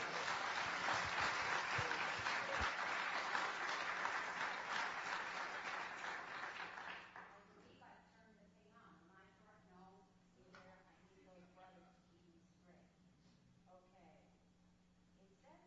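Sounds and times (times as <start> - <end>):
church audience applause welcoming a guest at a morning service: 0.0 - 7.3.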